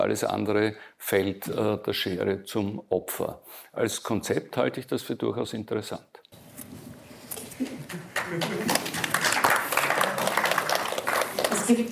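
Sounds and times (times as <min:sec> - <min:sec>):
speech: 0:00.0 - 0:06.2, 0:07.9 - 0:08.7, 0:11.7 - 0:11.9
audience applause: 0:07.9 - 0:11.9.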